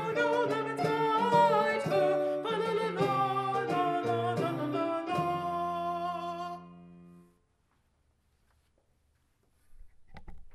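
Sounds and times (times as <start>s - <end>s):
slower alto voice: 0.0s - 7.3s.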